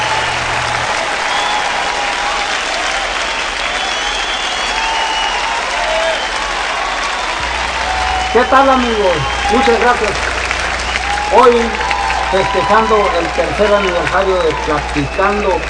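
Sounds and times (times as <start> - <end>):
audience applauding: 0.0 - 15.6
low rumble: 7.4 - 12.4
speech: 8.4 - 10.3, 11.3 - 15.6.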